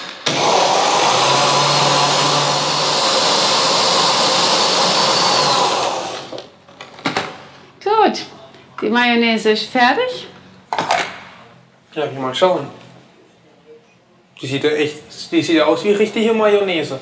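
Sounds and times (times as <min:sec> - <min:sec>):
blender mixing homemade mayonnaise with garlic and onion powder: 0:00.2 - 0:06.6
speech: 0:08.8 - 0:10.3, 0:12.0 - 0:12.8, 0:14.4 - 0:17.0.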